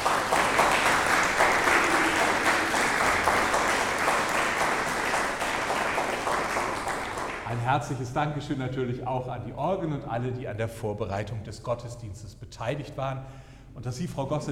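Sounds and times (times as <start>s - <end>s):
church audience applause: 0.0s - 7.6s
speech: 7.7s - 14.5s.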